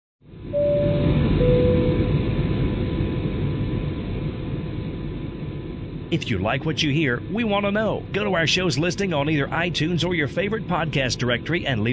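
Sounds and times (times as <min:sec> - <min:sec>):
airliner cabin noise in flight: 0:00.3 - 0:11.9
faint brief tones: 0:00.5 - 0:02.1
speech: 0:06.1 - 0:11.9.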